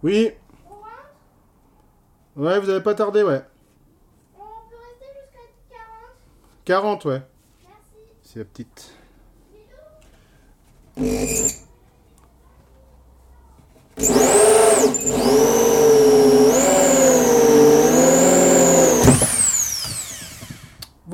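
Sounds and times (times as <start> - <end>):
speech: 0.0 - 0.4, 2.4 - 3.5, 6.7 - 7.3, 8.3 - 9.0, 11.0 - 11.7, 14.0 - 15.6
power drill with hole saw cutting through a board: 11.0 - 11.6, 14.0 - 20.8.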